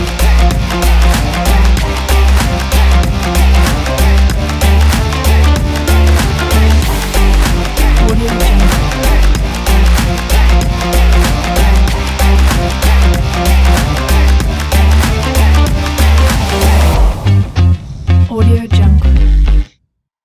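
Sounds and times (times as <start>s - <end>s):
upbeat percussion rock music: 0.0s - 19.6s.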